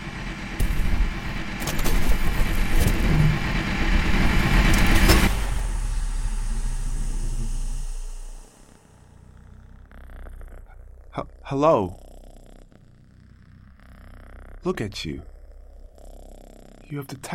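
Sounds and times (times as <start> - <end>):
backup generator starting up and whirring: 0.0 - 9.2
speech: 11.6 - 12.0, 14.6 - 15.3, 16.9 - 17.3.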